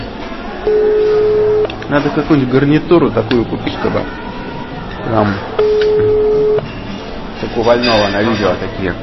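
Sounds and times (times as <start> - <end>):
telephone dial tone: 0.7 - 1.8
speech: 1.9 - 4.2, 5.0 - 5.6, 7.4 - 9.0.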